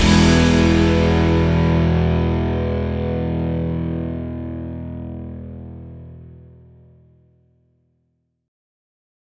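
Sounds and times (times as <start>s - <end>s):
corporate music: 0.0s - 6.4s.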